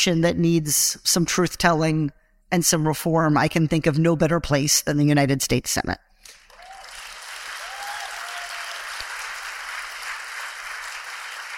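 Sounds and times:
speech: 0.0s - 6.1s
crowd applauding: 6.3s - 11.5s.

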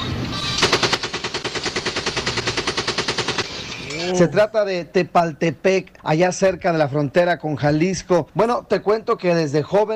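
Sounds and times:
automatic gunfire from an AK-47 assault rifle: 0.5s - 3.6s
speech: 4.1s - 9.9s.

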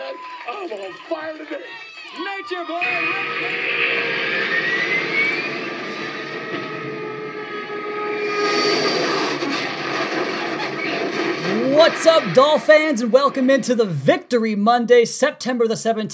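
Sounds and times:
speech: 0.5s - 5.0s, 11.8s - 16.1s
jet aircraft crashing down sound effect: 2.7s - 13.9s.

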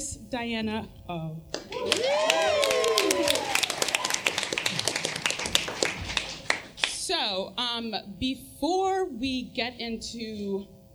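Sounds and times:
speech: 0.3s - 2.3s, 7.1s - 10.8s
audience clapping: 1.5s - 7.0s.

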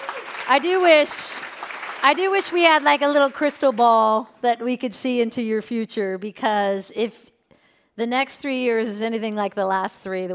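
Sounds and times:
audience cheering and applause: 0.0s - 3.3s
speech: 0.5s - 1.4s, 2.0s - 7.3s, 8.0s - 10.3s.

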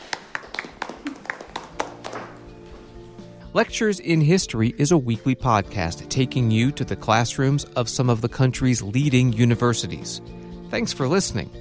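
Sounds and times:
classroom clapping: 0.0s - 2.9s
speech: 3.6s - 11.5s.

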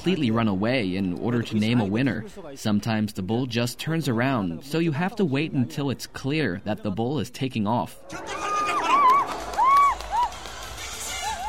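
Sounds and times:
speech: 0.0s - 8.5s
spectators cheering at a bullfight: 8.0s - 11.4s
individual spectators whooping and shouting: 8.1s - 11.4s.

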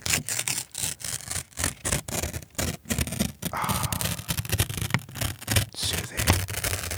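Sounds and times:
paper tearing: 0.0s - 6.9s.

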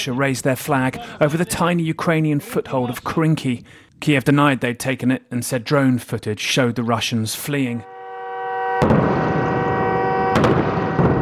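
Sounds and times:
speech: 0.0s - 7.9s
artillery shelling booms: 8.8s - 11.2s.

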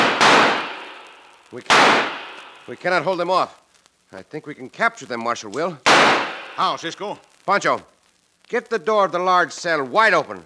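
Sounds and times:
gunshots in a shootout: 0.0s - 3.0s, 5.8s - 7.0s
speech: 1.5s - 7.9s, 8.5s - 10.4s.

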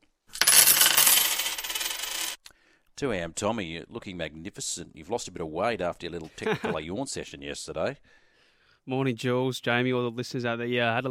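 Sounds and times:
coins spilling onto a hard surface: 0.3s - 2.4s
speech: 3.0s - 8.2s, 8.8s - 11.1s.

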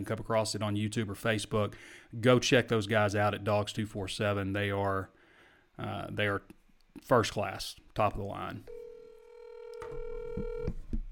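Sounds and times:
speech: 0.0s - 5.2s, 5.8s - 8.8s, 9.9s - 10.8s
steady telephone tone: 8.7s - 10.8s
telephone dialing beeps and clicks: 9.6s - 10.8s.

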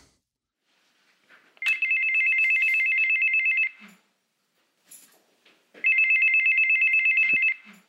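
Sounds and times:
electronic doorbell buzzing: 1.6s - 4.0s, 5.8s - 7.7s.

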